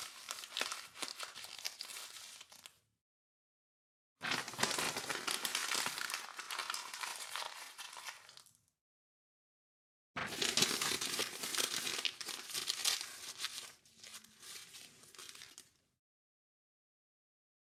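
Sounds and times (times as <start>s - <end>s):
paper crumpling: 0.0s - 2.8s, 4.2s - 8.6s, 10.2s - 15.8s
paper tearing: 4.2s - 8.5s, 10.2s - 15.6s.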